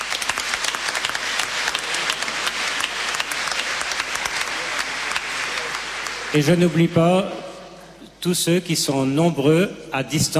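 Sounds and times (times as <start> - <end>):
audience applause: 0.0 - 7.0
speech: 6.3 - 7.4, 8.2 - 10.3.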